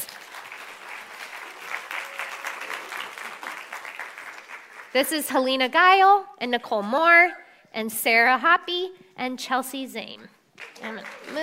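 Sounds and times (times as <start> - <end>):
audience applause welcoming guests to the stage: 0.0 - 5.0, 10.6 - 11.4
speech: 4.9 - 11.4.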